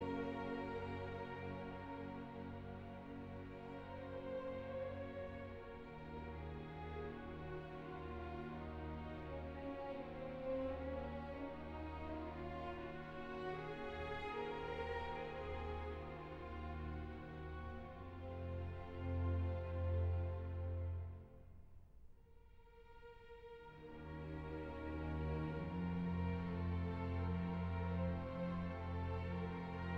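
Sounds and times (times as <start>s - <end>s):
slow string orchestra piece: 0.0s - 21.5s, 22.6s - 29.9s.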